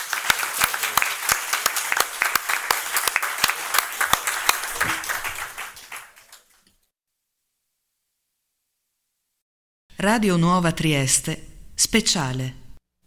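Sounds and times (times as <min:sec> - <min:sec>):
audience applause: 0:00.0 - 0:06.7
speech: 0:10.0 - 0:12.6.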